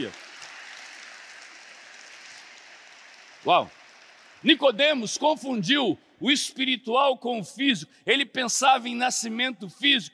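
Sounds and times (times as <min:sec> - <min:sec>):
speech: 0:00.0 - 0:00.2, 0:03.4 - 0:03.8, 0:04.4 - 0:10.1
audience applause: 0:00.0 - 0:04.6.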